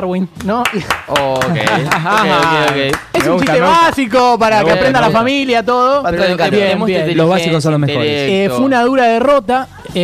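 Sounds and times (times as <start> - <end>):
speech: 0.0 - 10.0
sharp audience hand claps: 0.4 - 3.8
laughter: 0.8 - 3.8.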